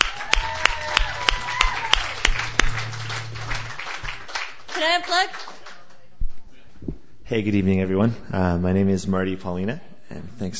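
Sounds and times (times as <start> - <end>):
audience applause welcoming a performer at an open mic night: 0.0 - 5.9
speech: 4.8 - 5.4, 7.3 - 10.5.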